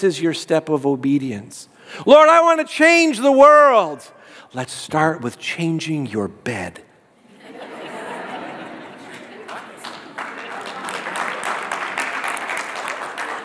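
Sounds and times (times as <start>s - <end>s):
speech: 0.0s - 6.9s
laughter: 7.2s - 11.8s
audience clapping: 9.0s - 13.4s.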